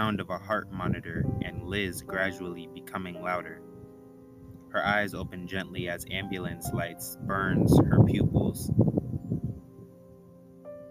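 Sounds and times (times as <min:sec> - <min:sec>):
speech: 0:00.1 - 0:03.7, 0:04.7 - 0:08.9
gusty wind: 0:00.7 - 0:02.1, 0:03.7 - 0:09.9.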